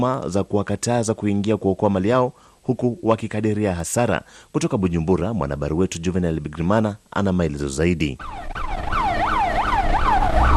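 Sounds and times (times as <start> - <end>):
speech: 0.0 - 8.7
fire engine sirens at the Kamenge market in Bujumbura: 8.2 - 10.5.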